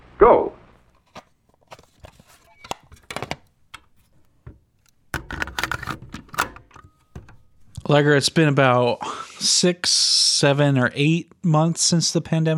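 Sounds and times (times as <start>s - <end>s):
speech: 0.2s - 0.5s, 7.9s - 12.5s
clicks and rustling of a tape being taken off and a new one threaded: 0.9s - 7.9s.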